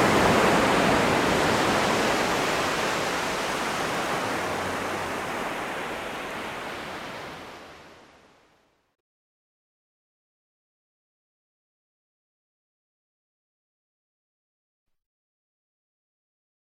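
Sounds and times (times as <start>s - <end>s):
water in nature: 0.0s - 9.0s.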